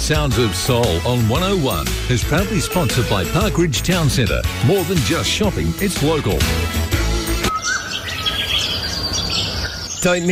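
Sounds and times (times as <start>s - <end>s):
speech: 0.1s - 6.9s, 10.0s - 10.3s
birdsong chirping: 7.1s - 10.3s.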